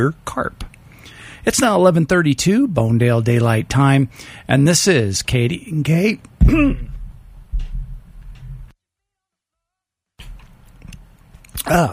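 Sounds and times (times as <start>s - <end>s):
speech: 0.0s - 0.7s, 1.4s - 6.9s, 11.6s - 11.9s
throat clearing: 6.4s - 7.0s, 11.6s - 11.9s.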